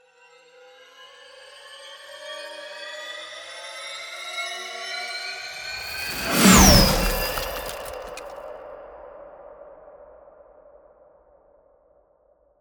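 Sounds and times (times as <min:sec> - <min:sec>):
ice spell cold whooshes: 0:05.8 - 0:08.3.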